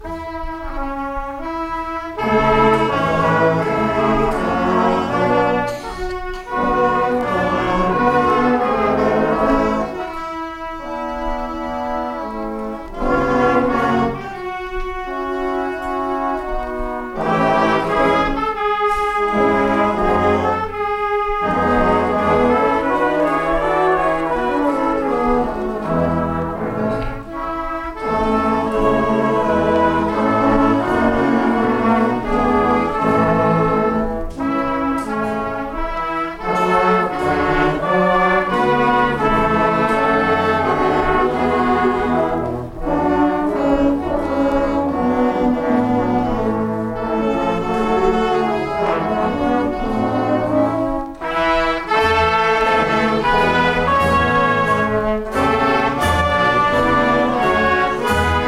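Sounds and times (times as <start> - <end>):
fanfare: 0.0 - 58.4.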